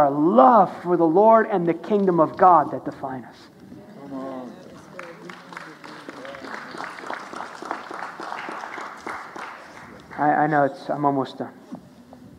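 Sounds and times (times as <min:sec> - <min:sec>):
speech: 0:00.0 - 0:03.5, 0:10.2 - 0:11.6
light polite golf claps from a small group: 0:04.5 - 0:10.6.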